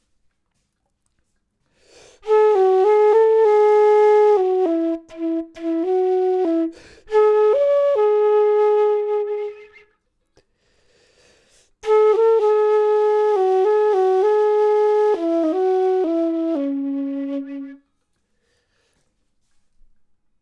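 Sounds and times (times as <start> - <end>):
flute: 2.1 - 10.0, 11.8 - 18.0.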